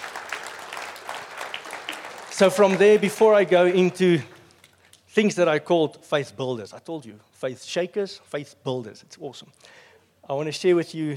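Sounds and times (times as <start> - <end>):
audience clapping: 0.0 - 4.9
speech: 2.4 - 4.3, 5.2 - 11.1.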